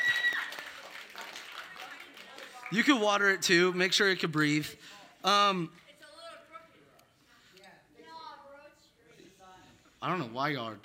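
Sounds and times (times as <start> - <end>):
round of applause: 0.0 - 3.0
speech: 2.7 - 5.8, 10.0 - 10.8.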